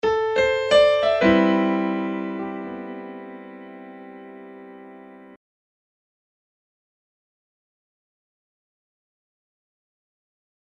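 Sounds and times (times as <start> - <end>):
piano playing: 0.0 - 5.4.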